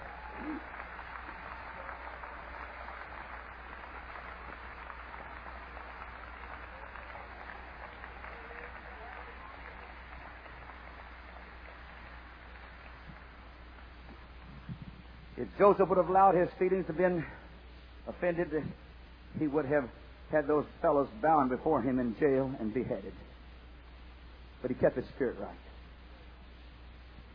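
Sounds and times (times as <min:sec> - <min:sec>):
audience clapping hands: 0:00.0 - 0:15.0
speech: 0:15.4 - 0:17.4, 0:18.1 - 0:18.8, 0:19.4 - 0:23.2, 0:24.6 - 0:25.7.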